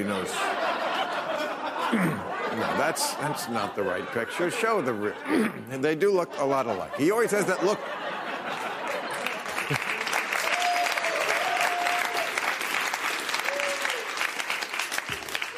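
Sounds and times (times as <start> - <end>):
speech: 0.0 - 0.6, 1.9 - 8.2
laughter: 0.0 - 10.8
audience applause: 8.2 - 15.5.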